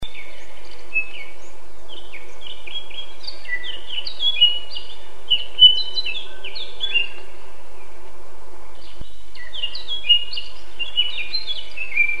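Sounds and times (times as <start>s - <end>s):
Eurasian blackcap singing: 0.0s - 7.4s, 8.8s - 12.1s.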